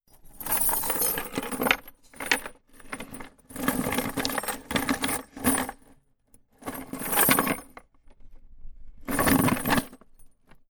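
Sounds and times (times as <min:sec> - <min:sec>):
chain rattling in wooden box: 0:00.3 - 0:05.8, 0:06.6 - 0:07.7, 0:09.1 - 0:10.0.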